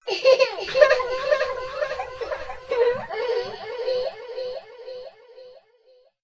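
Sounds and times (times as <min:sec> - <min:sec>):
child laughing: 0:00.0 - 0:05.1.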